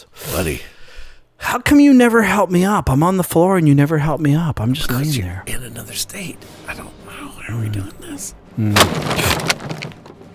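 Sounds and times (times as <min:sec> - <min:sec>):
speech: 0:00.0 - 0:00.8, 0:01.5 - 0:10.0
door bursting open with explosive bang: 0:08.7 - 0:10.3.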